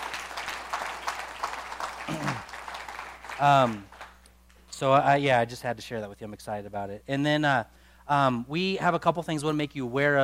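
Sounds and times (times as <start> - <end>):
audience round of applause: 0.0 - 4.2
speech: 3.4 - 3.9, 4.8 - 10.2.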